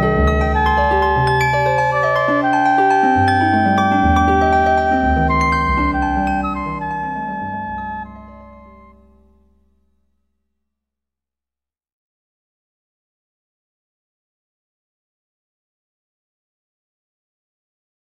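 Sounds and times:
rhythm in changing meter: 0.0s - 8.9s.

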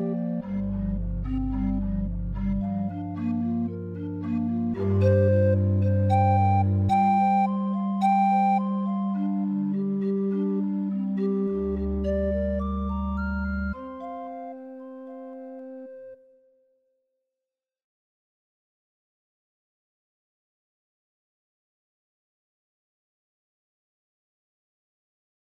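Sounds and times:
forest pan flute music: 0.0s - 16.6s.

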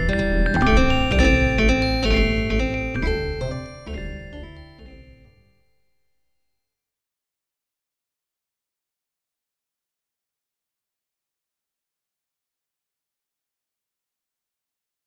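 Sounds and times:
polyrhythm: 0.0s - 5.3s.

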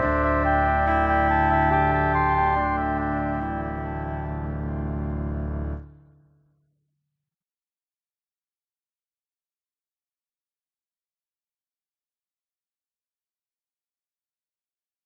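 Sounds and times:
cello playing pentatonic: 0.0s - 5.8s.

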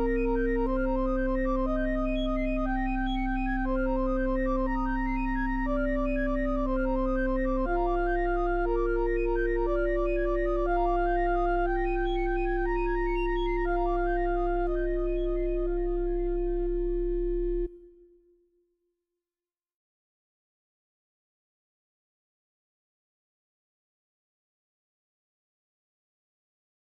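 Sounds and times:
recorder quintet: 0.0s - 18.0s.

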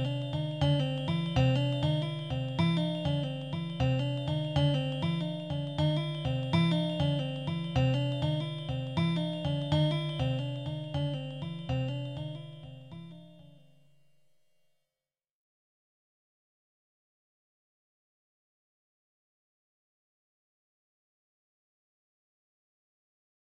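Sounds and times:
tonal soundscape: 0.0s - 13.7s.

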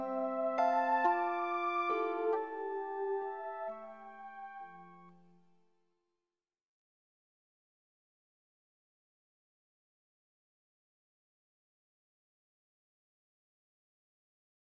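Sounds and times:
chord progression: 0.0s - 5.2s.

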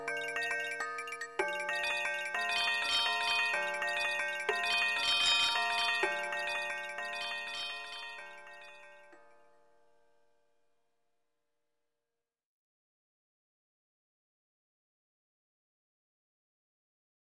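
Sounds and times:
fractal percussion in a major chord: 0.0s - 8.9s.

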